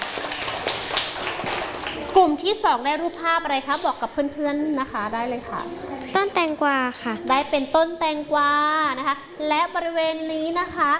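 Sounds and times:
classroom applause for a student group: 0.0 - 2.5
speech: 2.2 - 10.9.

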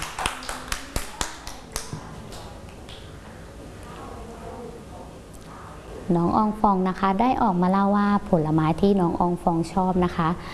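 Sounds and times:
children clapping: 0.0 - 3.1
speech: 6.1 - 10.5.

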